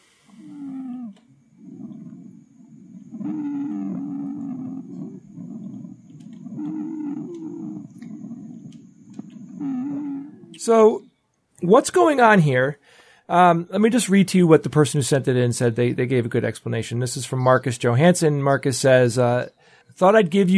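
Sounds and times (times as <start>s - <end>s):
wheezing lung sounds from narrowed airways: 0.0s - 10.6s
speech: 10.6s - 20.5s.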